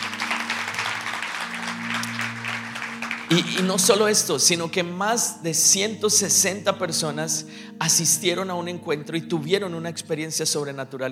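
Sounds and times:
audience applauding: 0:00.0 - 0:04.2
speech: 0:03.3 - 0:11.1.

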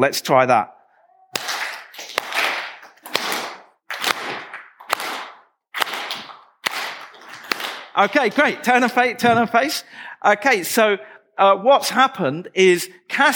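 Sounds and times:
speech: 0:00.0 - 0:00.8, 0:08.0 - 0:13.3
audience clapping in time: 0:01.4 - 0:09.0.

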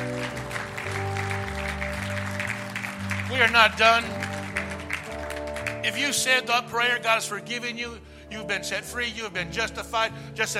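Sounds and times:
audience applause: 0:00.0 - 0:06.2
keyboard or organ chords: 0:00.0 - 0:10.5
speech: 0:03.3 - 0:04.2, 0:05.8 - 0:10.5.

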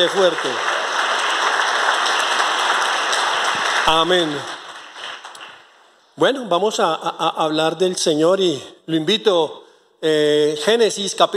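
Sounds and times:
speech: 0:00.0 - 0:00.8, 0:03.9 - 0:04.6, 0:06.2 - 0:11.3
audience applause: 0:00.0 - 0:05.8.

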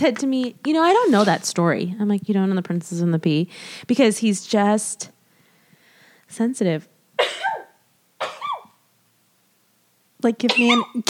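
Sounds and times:
speech: 0:00.0 - 0:05.2, 0:06.3 - 0:06.9, 0:10.2 - 0:11.0
sneezes: 0:07.2 - 0:08.8, 0:10.4 - 0:11.0.

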